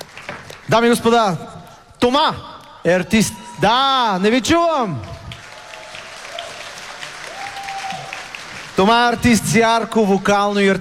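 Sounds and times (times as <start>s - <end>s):
speech: 0.7s - 5.1s, 8.8s - 10.8s
audience applause at a national music awards ceremony: 4.9s - 9.9s.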